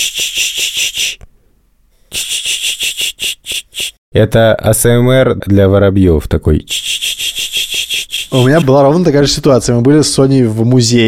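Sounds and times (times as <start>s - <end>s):
person imitating a shushing hiss: 0.0s - 1.2s, 2.1s - 4.0s, 6.7s - 8.6s
speech: 4.2s - 7.1s, 8.3s - 11.0s.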